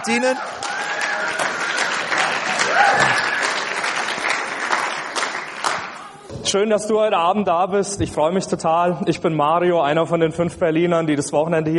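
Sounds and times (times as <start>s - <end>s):
speech: 0.0s - 1.4s, 2.7s - 3.4s, 6.4s - 11.7s
audience applause: 0.0s - 6.2s.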